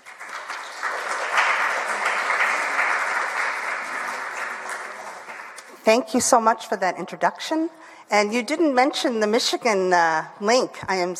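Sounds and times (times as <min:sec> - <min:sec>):
audience applause welcoming an author at a book talk: 0:00.0 - 0:05.8
speech: 0:05.9 - 0:11.1.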